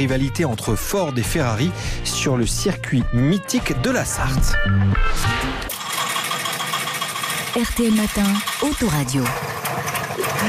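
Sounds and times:
speech: 0:00.0 - 0:05.8, 0:07.6 - 0:09.8
Trabant two-stroke car engine sputtering: 0:05.7 - 0:10.4.

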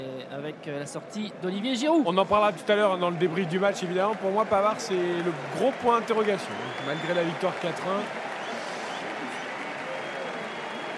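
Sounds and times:
speech: 0:00.0 - 0:08.2
stadium crowd applauding substituted player: 0:02.2 - 0:10.9.

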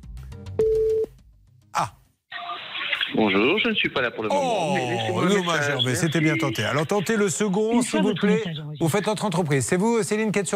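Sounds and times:
ringback tone on an outgoing call to a subcontractor's phone: 0:00.6 - 0:01.1
speech: 0:01.8 - 0:02.0, 0:03.2 - 0:10.5.

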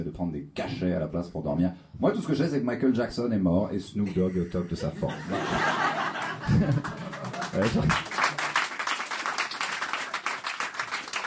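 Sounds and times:
speech: 0:00.0 - 0:07.0, 0:07.6 - 0:08.2
laughter: 0:04.0 - 0:08.4
audience applause: 0:05.5 - 0:11.2.

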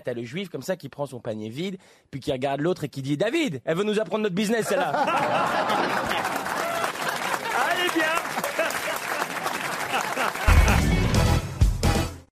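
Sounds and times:
speech: 0:00.0 - 0:06.4
laughter: 0:04.6 - 0:11.2
audience applause: 0:05.1 - 0:11.4.

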